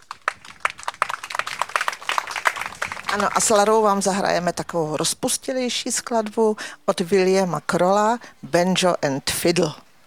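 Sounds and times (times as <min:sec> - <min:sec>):
audience applause: 0:00.0 - 0:03.6
speech: 0:03.1 - 0:09.8.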